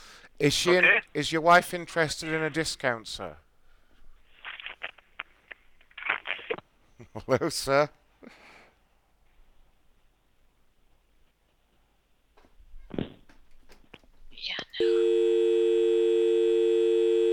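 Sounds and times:
speech: 0.4s - 3.4s, 7.2s - 8.4s
telephone busy signal after a call is hung up: 14.8s - 17.3s.

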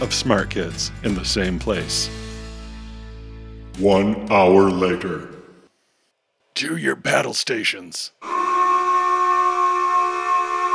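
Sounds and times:
speech: 0.0s - 2.3s, 3.8s - 5.4s, 6.6s - 8.4s
screeching submarine dive alarm: 8.2s - 10.7s.

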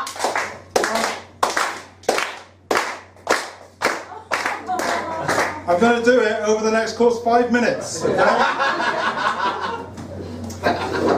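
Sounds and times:
audience athlete's clap, rhythmic clapping: 0.0s - 5.7s
speech: 5.7s - 8.8s
laughter: 7.8s - 11.1s.

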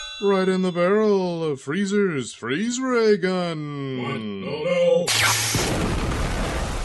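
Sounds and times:
speech: 0.2s - 6.0s
grenade explosion sound effect: 5.1s - 6.8s.

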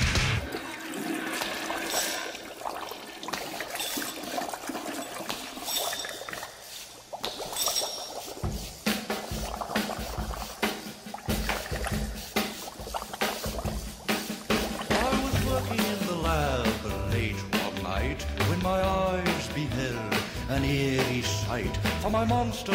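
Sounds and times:
toilet flushing: 0.0s - 22.7s
speech: 22.2s - 22.7s.

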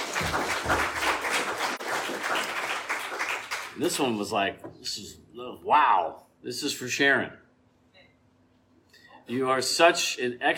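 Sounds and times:
audience applause: 0.0s - 3.8s
speech: 3.8s - 7.4s, 9.3s - 10.5s.

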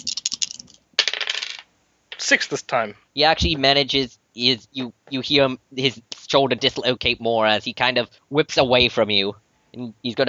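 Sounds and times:
dice rattling on a hard surface: 0.0s - 2.2s
speech: 2.3s - 10.2s.

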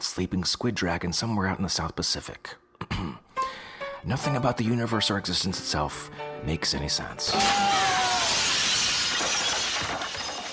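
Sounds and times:
speech: 0.1s - 3.2s, 4.0s - 7.9s
glass window pane shattering: 7.4s - 10.5s
glass shards tinkling: 8.3s - 10.5s.

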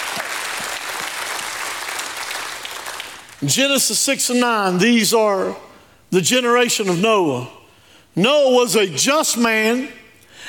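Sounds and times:
audience applause: 0.0s - 3.4s
speech: 3.4s - 7.6s, 8.2s - 10.4s.

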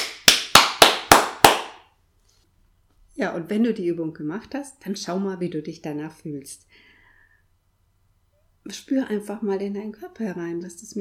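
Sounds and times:
single person clapping hands: 0.0s - 1.9s
speech: 3.2s - 6.8s, 8.6s - 11.0s.

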